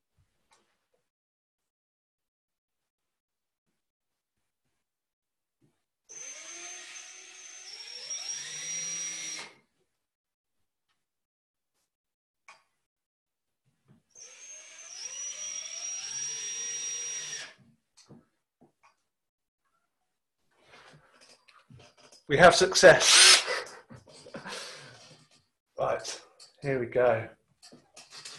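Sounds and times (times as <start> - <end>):
power drill driving screws into a hinge: 6.1 - 9.6, 14.1 - 17.6, 23.0 - 23.7
speech: 22.3 - 23.4, 26.6 - 27.4.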